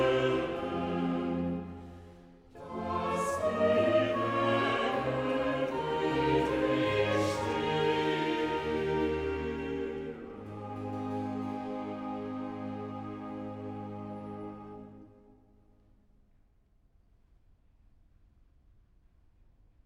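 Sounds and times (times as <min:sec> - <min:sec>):
choir singing: 0:00.0 - 0:15.3.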